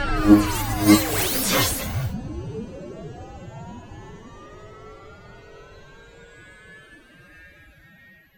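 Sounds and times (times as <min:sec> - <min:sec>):
science fiction cosmic waves: 0:00.2 - 0:02.2.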